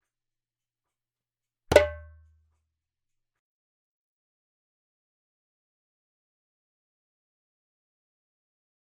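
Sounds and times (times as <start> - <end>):
djembe drumming: 1.7 - 2.2.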